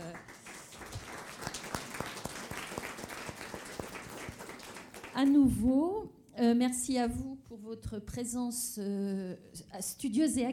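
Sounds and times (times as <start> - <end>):
audience applause: 0.0 - 5.3
speech: 5.2 - 10.5.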